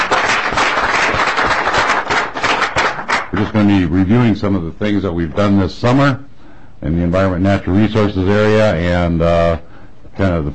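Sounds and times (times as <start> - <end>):
audience applause in a legislative chamber: 0.0 - 3.6
speech: 3.4 - 10.5.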